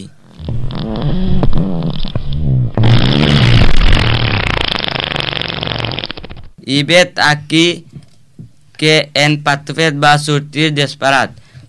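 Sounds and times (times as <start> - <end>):
ox farting: 0.3 - 6.6
speech: 0.9 - 1.8, 6.7 - 7.9, 8.8 - 11.4.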